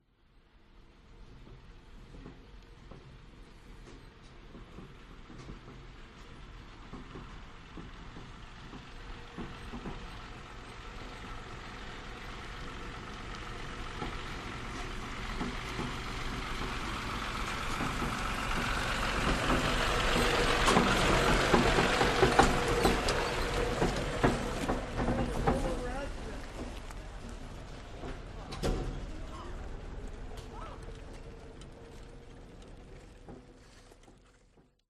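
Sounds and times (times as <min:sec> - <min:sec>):
tractor and hay wagon passing by on a farm in the USA: 0:00.1 - 0:34.8
people on a farm: 0:20.2 - 0:33.0.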